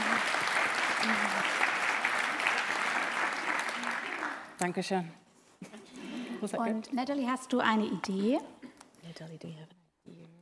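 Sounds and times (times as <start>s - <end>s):
audience applause: 0.0s - 4.6s
speech: 4.6s - 5.2s, 6.4s - 8.6s, 9.2s - 9.8s.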